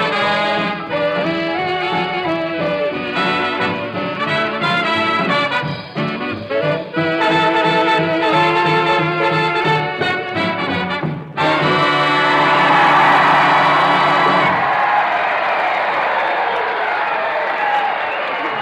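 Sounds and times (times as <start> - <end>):
crowd cheering: 0.0 - 10.0, 11.4 - 18.6
big band brassy closing chord: 0.0 - 14.7
whoops: 12.2 - 18.6
loud sustained applause: 12.3 - 18.6.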